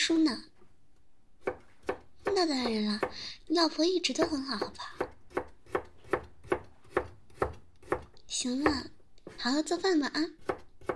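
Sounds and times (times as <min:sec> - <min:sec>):
speech: 0:00.0 - 0:00.5, 0:02.4 - 0:05.1, 0:08.3 - 0:10.5
knife chopping vegetables: 0:01.4 - 0:03.2, 0:04.1 - 0:10.9.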